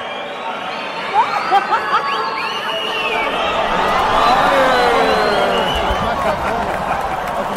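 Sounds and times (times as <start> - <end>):
large arena crowd roaring and cheering: 0.0 - 7.5
shouts and whistles: 0.0 - 7.5
laughter: 1.1 - 7.5
sharp claps: 3.8 - 7.5.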